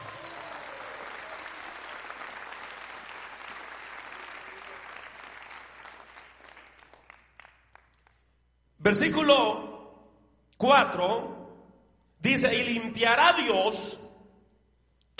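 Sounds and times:
audience applauding: 0:00.0 - 0:08.2
speech: 0:08.9 - 0:09.7, 0:10.6 - 0:11.3, 0:12.2 - 0:14.0.

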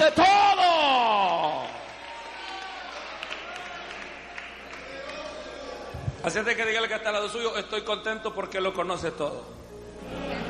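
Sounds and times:
audience clapping: 0:01.0 - 0:05.8
speech: 0:06.2 - 0:10.2.

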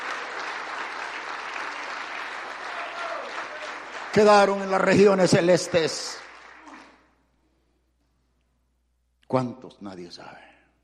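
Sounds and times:
audience applause: 0:00.0 - 0:07.1
speech: 0:04.2 - 0:06.2, 0:09.3 - 0:10.5.

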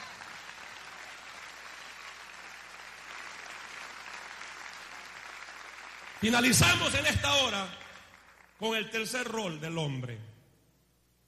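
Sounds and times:
audience clapping: 0:00.0 - 0:08.9
speech: 0:06.2 - 0:07.8, 0:08.6 - 0:10.3.

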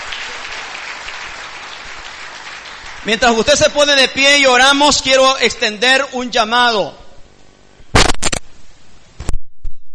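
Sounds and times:
congregation applauding in church: 0:00.0 - 0:04.4
speech: 0:03.0 - 0:07.0.

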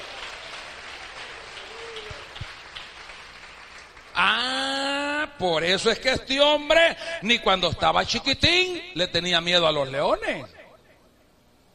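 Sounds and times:
audience applauding: 0:00.0 - 0:04.4
speech: 0:05.4 - 0:10.6.

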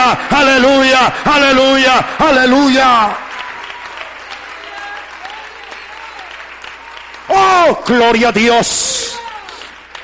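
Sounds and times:
speech: 0:00.1 - 0:03.3, 0:07.3 - 0:09.2
crowd audience applause: 0:02.2 - 0:10.0.

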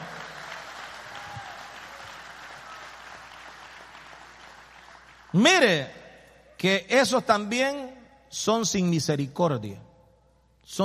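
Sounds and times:
audience clapping hands: 0:00.0 - 0:05.7
speech: 0:05.3 - 0:06.0, 0:06.6 - 0:09.8, 0:10.6 - 0:10.8.

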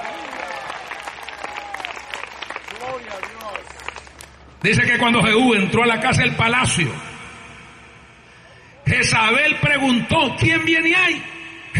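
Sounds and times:
scattered voices and cheers: 0:00.0 - 0:03.7
audience applause: 0:00.0 - 0:04.4
speech: 0:04.6 - 0:07.1, 0:09.0 - 0:11.3.

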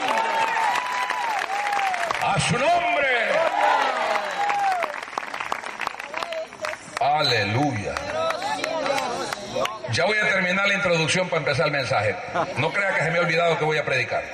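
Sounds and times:
loud audience applause: 0:00.0 - 0:09.8
speech: 0:02.3 - 0:03.2, 0:07.2 - 0:08.1, 0:09.6 - 0:14.3.

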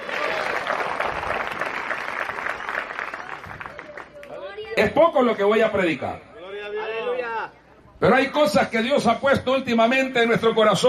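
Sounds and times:
audience clapping: 0:00.0 - 0:04.4
speech: 0:04.8 - 0:06.3, 0:08.0 - 0:10.8.

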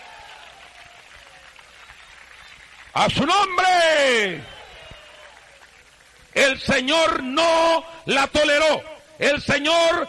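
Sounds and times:
audience applause: 0:00.0 - 0:06.2
speech: 0:02.9 - 0:04.6, 0:06.4 - 0:10.0.

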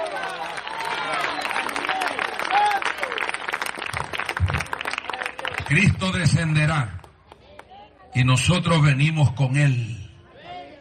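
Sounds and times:
audience applause: 0:00.0 - 0:06.0
speech: 0:05.7 - 0:07.0, 0:08.2 - 0:10.0.

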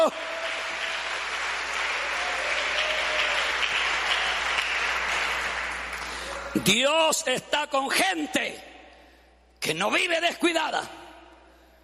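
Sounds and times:
speech: 0:00.0 - 0:00.3, 0:06.6 - 0:08.7, 0:09.6 - 0:11.0
audience applauding: 0:00.0 - 0:06.7.

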